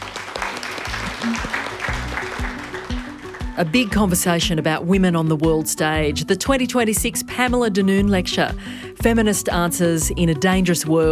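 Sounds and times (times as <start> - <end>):
audience applause for the panel: 0.0 - 4.2
speech: 3.6 - 11.1.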